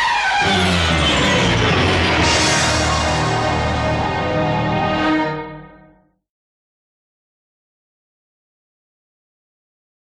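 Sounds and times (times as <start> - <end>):
music: 0.0 - 6.3.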